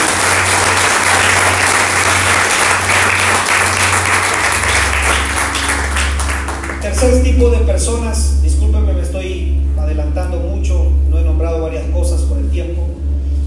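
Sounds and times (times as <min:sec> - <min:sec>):
audience applauding loudly: 0:00.0 - 0:07.3
low steady hum: 0:00.0 - 0:13.4
speech: 0:07.0 - 0:13.1.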